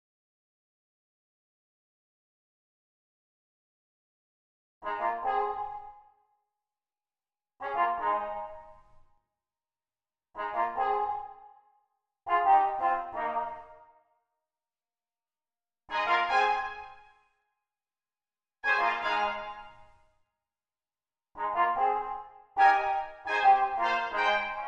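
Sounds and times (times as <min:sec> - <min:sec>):
brass instruments: 0:04.8 - 0:06.0, 0:07.6 - 0:09.0, 0:10.4 - 0:11.6, 0:12.3 - 0:14.1, 0:15.9 - 0:17.2, 0:18.6 - 0:20.1, 0:21.4 - 0:24.6.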